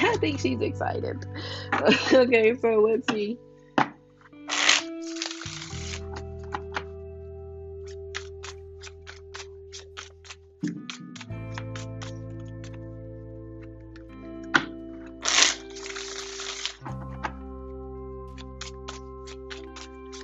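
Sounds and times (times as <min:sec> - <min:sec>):
laughter: 0:00.0 - 0:00.6, 0:01.8 - 0:02.4
speech: 0:00.2 - 0:03.5
tarot cards being shuffled: 0:04.4 - 0:06.9, 0:07.8 - 0:12.8, 0:14.6 - 0:17.4, 0:18.3 - 0:20.2.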